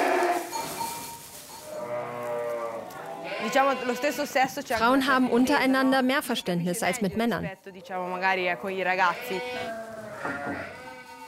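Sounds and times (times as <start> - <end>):
sheep bleating: 0.0 - 0.5, 1.7 - 6.4, 8.4 - 11.2
speech: 3.4 - 10.7.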